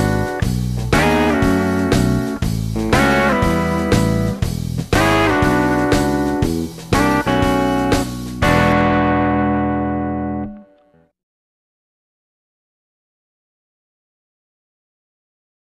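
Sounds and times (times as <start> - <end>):
rhythm guitar: 0.0 - 11.0.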